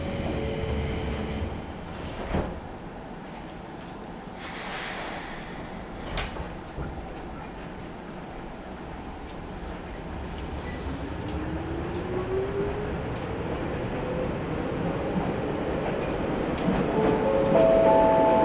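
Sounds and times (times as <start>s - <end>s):
Izuhakone Railway Daiyuzan Line train running: 0.0s - 18.4s
train wheels clicking and clunking: 1.4s - 12.2s, 15.2s - 17.9s.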